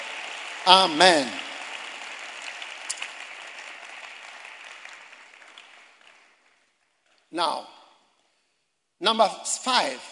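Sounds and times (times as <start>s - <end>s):
audience applause: 0.0s - 7.0s
speech: 0.7s - 1.4s, 7.3s - 7.8s, 9.0s - 10.1s.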